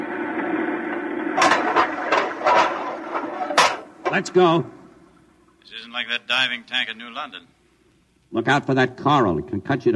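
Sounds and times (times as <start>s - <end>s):
airlock filling: 0.0s - 5.6s
speech: 4.1s - 4.8s, 5.7s - 7.6s, 8.3s - 9.9s.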